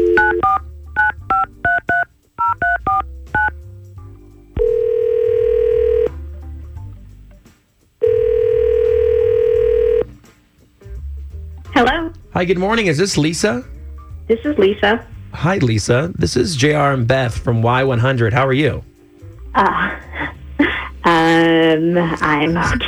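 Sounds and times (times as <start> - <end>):
touch-tone beeps of a phone number being dialed: 0.0 - 3.5
phone ringing tones: 0.0 - 3.6, 4.6 - 6.2, 8.0 - 10.1
speech: 12.4 - 18.9, 19.6 - 20.0, 21.3 - 22.8.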